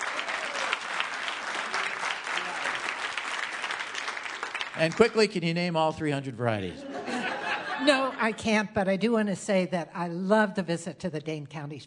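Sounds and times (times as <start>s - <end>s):
audience applause: 0.0s - 5.8s
speech: 4.8s - 6.9s, 7.8s - 11.8s
laughter: 6.6s - 8.4s.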